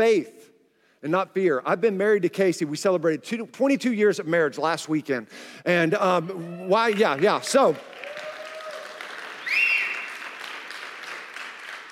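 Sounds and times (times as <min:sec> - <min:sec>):
speech: 0:00.0 - 0:00.4, 0:01.0 - 0:08.0
audience applause: 0:06.7 - 0:11.9.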